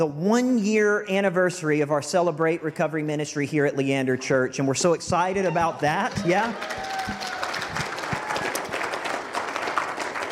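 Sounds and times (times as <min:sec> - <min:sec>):
speech: 0:00.0 - 0:07.4
audience clapping in church: 0:05.6 - 0:10.3.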